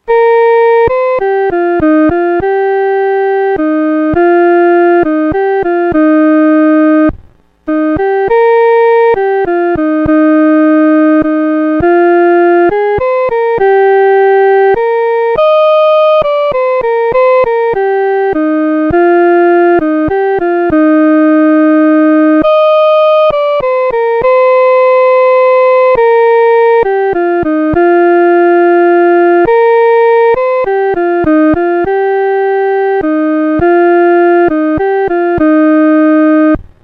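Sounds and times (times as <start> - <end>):
solo first voice: 0.0 - 36.8.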